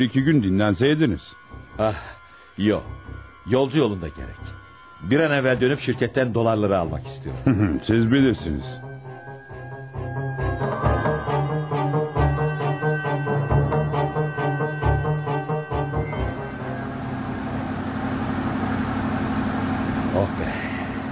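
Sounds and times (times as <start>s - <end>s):
speech: 0.0s - 8.9s
truck engine rumbling while driving: 6.9s - 21.1s.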